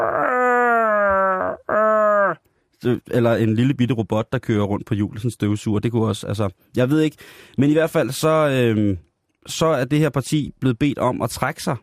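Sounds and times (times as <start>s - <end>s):
voice imitating a furry alien creature's growl: 0.0s - 2.4s
speech: 2.8s - 11.8s.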